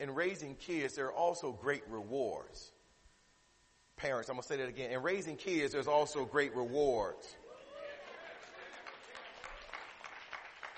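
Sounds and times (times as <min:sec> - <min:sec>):
speech: 0:00.0 - 0:02.8, 0:04.0 - 0:07.4
children clapping: 0:08.0 - 0:10.7.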